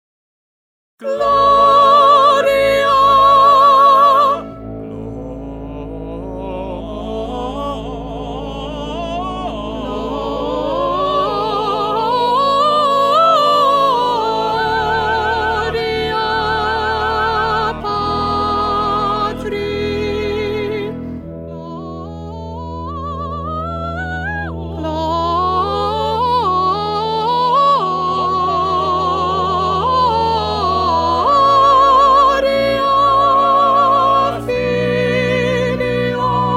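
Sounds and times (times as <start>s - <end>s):
soprano singing: 1.0s - 36.5s.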